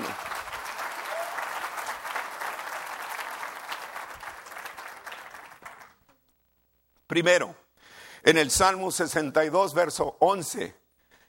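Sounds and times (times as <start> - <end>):
audience applause: 0.0 - 6.0
speech: 7.1 - 7.6, 8.2 - 10.8.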